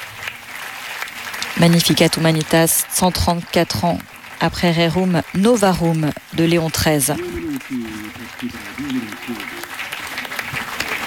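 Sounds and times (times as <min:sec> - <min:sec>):
large crowd applause in a crowded synod hall: 0:00.0 - 0:11.0
speech: 0:01.6 - 0:09.8
laughter: 0:07.0 - 0:10.2.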